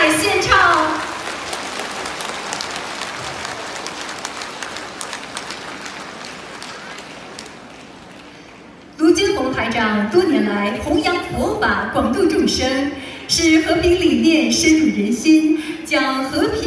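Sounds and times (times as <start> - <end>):
audience applause: 0.0 - 8.7
speech: 9.8 - 16.6.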